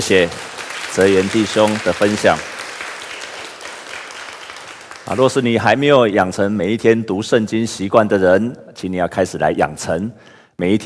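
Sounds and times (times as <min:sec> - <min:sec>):
speech: 0:00.0 - 0:02.5, 0:05.1 - 0:10.8
audience applause: 0:00.0 - 0:05.5.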